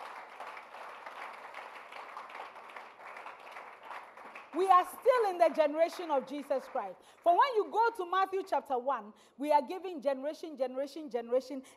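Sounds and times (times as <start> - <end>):
audience clapping: 0.0 - 7.8
speech: 4.5 - 11.7.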